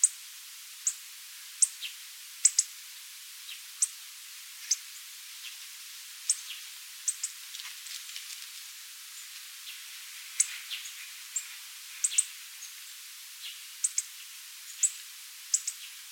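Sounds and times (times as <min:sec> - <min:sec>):
faint hiss: 0:00.0 - 0:16.1
hawfinch calls: 0:02.4 - 0:02.7, 0:06.3 - 0:07.4, 0:10.4 - 0:12.3, 0:13.8 - 0:14.1, 0:14.7 - 0:15.9.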